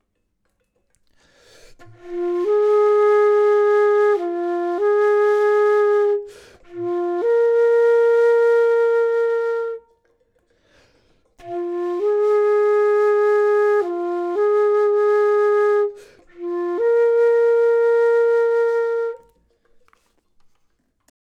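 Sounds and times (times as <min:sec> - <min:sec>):
flute: 0:01.7 - 0:10.1, 0:11.4 - 0:19.6.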